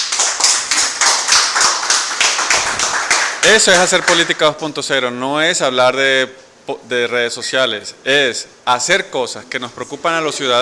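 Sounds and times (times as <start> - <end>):
applause for the group: 0.0 - 4.4
speech: 3.4 - 10.5.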